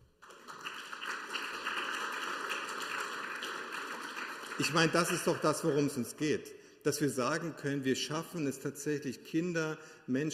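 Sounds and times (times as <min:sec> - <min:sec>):
audience applause: 0:00.2 - 0:05.8
speech: 0:04.6 - 0:10.3.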